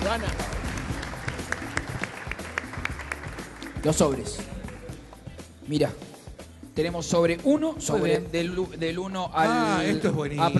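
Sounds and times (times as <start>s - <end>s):
audience applause: 0.0s - 3.9s
speech: 0.1s - 0.5s, 3.8s - 4.6s, 5.7s - 6.1s, 6.8s - 10.5s.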